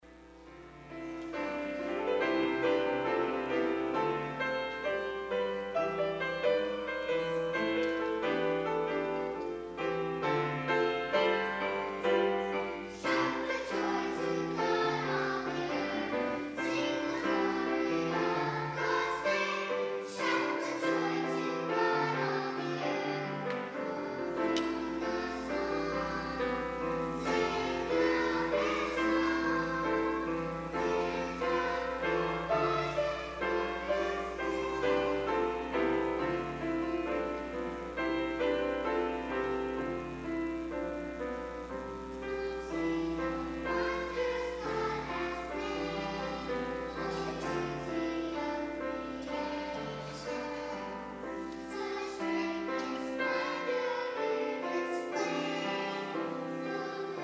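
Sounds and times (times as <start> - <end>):
junior choir singing: 0.0 - 57.2.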